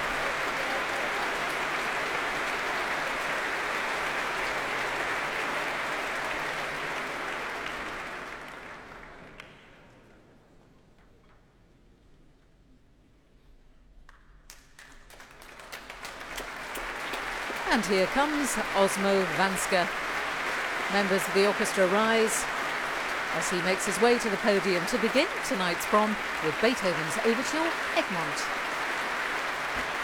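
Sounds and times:
concert audience applause: 0.0s - 9.7s, 14.5s - 30.0s
speech: 17.7s - 20.0s, 20.9s - 22.6s, 23.3s - 28.7s.

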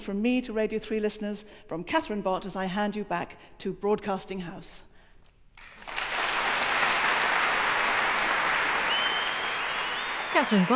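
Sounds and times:
speech: 0.0s - 4.9s, 10.4s - 10.7s
concert audience wild cheering: 5.8s - 10.7s.

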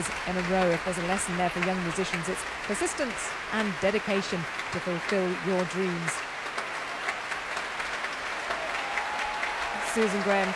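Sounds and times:
speech: 0.0s - 6.3s, 10.0s - 10.5s
applauding the young players: 0.0s - 10.5s.

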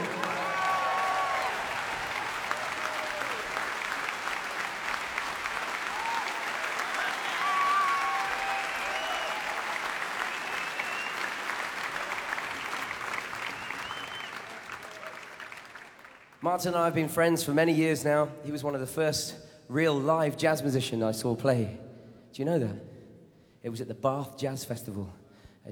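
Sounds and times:
audience applause: 0.0s - 16.4s
speech: 16.4s - 22.9s, 23.6s - 25.7s.

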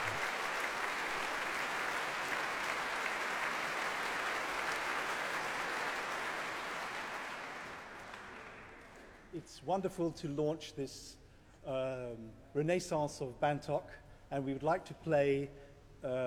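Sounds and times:
concert audience applause: 0.0s - 9.2s
speech: 9.4s - 16.2s.

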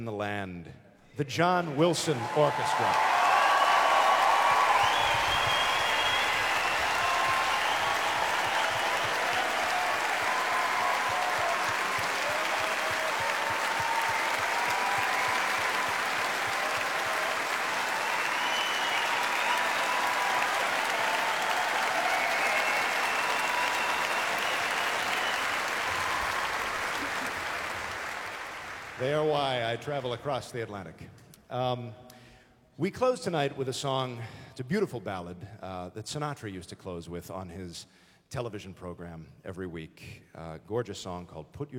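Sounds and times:
speech: 0.0s - 3.2s, 29.8s - 32.1s, 32.8s - 41.7s
large audience applause for orchestra: 1.6s - 30.2s.

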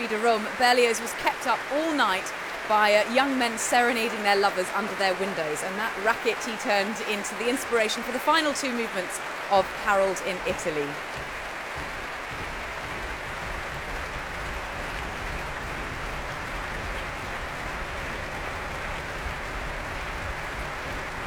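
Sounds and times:
applause: 0.0s - 21.2s
speech: 0.1s - 11.2s
orchestra members stamping feet: 10.9s - 17.0s.

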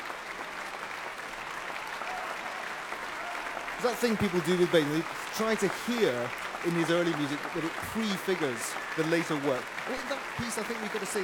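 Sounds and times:
large audience ovation applause in a concert hall: 0.0s - 11.2s
speech: 3.8s - 11.2s.

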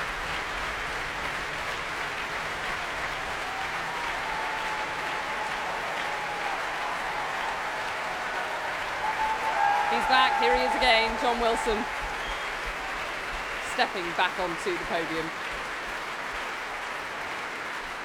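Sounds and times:
capacity concert audience applauding: 0.0s - 18.0s
speech: 10.0s - 12.0s, 13.8s - 15.5s.

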